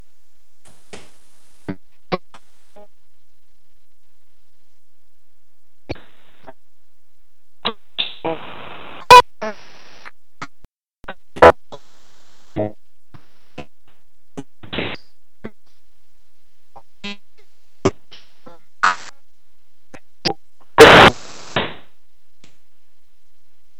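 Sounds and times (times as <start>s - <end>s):
broken communications transmission: 0.7s - 4.6s, 5.9s - 6.6s, 7.6s - 13.7s, 18.2s - 19.1s, 20.8s - 21.8s.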